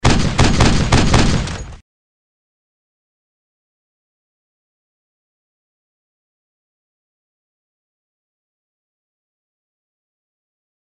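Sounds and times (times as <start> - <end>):
continuous pistol shots: 0.0 - 1.8.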